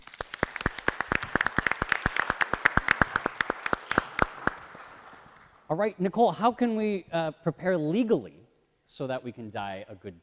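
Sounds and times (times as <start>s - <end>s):
audience applause: 0.0s - 5.6s
speech: 5.7s - 10.2s.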